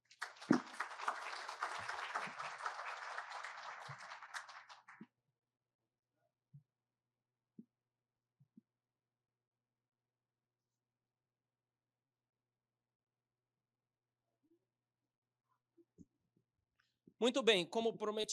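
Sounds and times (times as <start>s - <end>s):
audience applause in an auditorium: 0.0s - 5.0s
speech: 17.2s - 18.3s.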